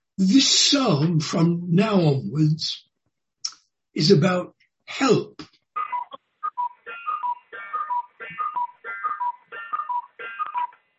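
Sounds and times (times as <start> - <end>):
speech: 0.2 - 2.9, 4.0 - 5.5
cuckoo clock call: 5.9 - 10.8.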